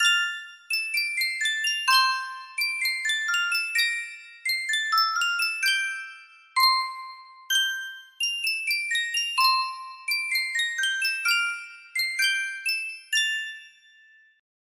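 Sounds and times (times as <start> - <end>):
Sankyo 12-note music box: 0.0 - 14.4.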